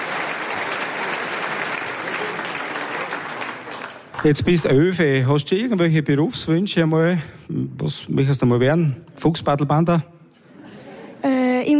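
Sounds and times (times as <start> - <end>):
applause: 0.0 - 5.0
speech: 4.2 - 10.1
laughter: 10.4 - 11.3.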